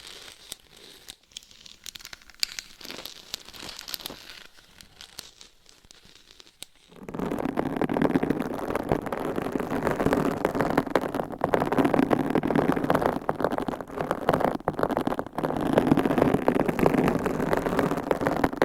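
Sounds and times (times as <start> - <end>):
scratching on a microphone: 2.7 - 18.6
tapping on a microphone: 6.9 - 18.6.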